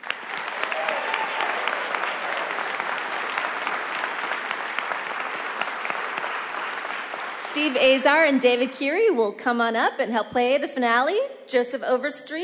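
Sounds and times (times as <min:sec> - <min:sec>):
audience applause: 0:00.0 - 0:08.9
speech: 0:07.6 - 0:12.4.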